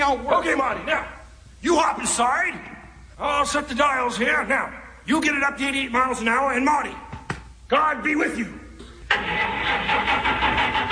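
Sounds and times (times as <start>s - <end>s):
speech: 0.1s - 7.0s, 7.7s - 10.1s
car engine trying to start: 9.1s - 10.9s.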